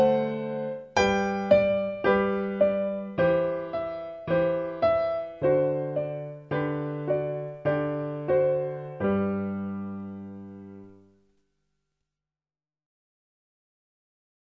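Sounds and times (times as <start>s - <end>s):
piano: 0.0s - 11.5s.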